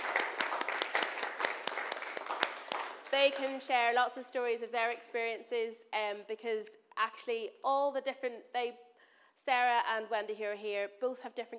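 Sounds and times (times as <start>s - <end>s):
audience clapping: 0.0s - 3.8s
speech: 3.2s - 11.5s.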